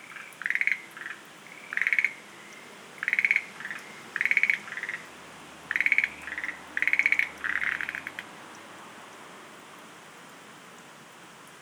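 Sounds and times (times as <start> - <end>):
Schlegel's green tree frog rattling pulsed croaks: 0.0 - 5.1, 5.7 - 8.3.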